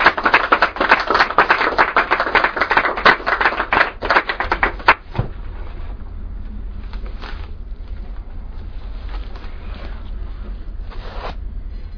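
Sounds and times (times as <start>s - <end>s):
audience applauding: 0.0s - 5.0s.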